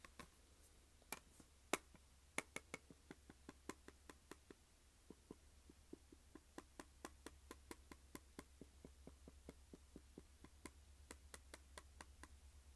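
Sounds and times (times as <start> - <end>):
fingers tapping on a plastic case: 1.1 - 12.4.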